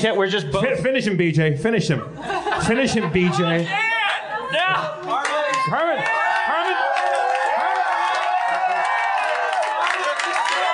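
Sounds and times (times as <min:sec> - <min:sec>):
speech: 0:00.0 - 0:03.9, 0:04.5 - 0:06.9
laughter: 0:02.1 - 0:05.1
crowd cheering and shouting: 0:03.4 - 0:10.7.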